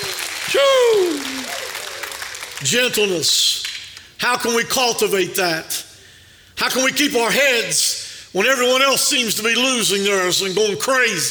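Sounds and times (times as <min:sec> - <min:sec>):
audience applause: 0:00.0 - 0:02.9
person shouting: 0:00.4 - 0:01.6
speech: 0:00.5 - 0:01.5, 0:02.6 - 0:05.9, 0:06.6 - 0:11.2.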